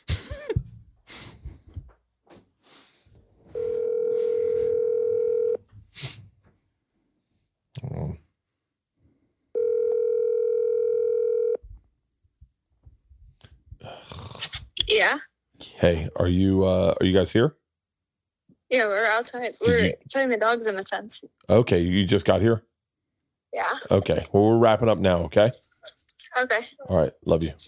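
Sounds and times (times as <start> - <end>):
phone call ringback tones: 3.5 - 5.6, 9.6 - 11.6
speech: 15.0 - 17.6, 18.7 - 22.7, 23.5 - 27.6.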